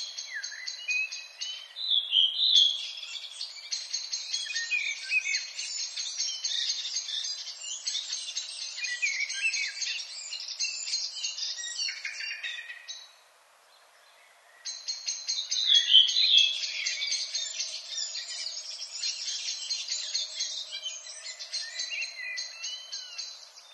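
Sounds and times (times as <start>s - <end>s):
redwing thrush: 0.0s - 23.7s.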